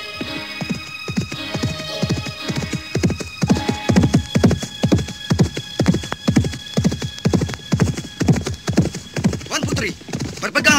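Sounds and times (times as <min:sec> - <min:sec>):
horses galloping: 0:00.0 - 0:10.7.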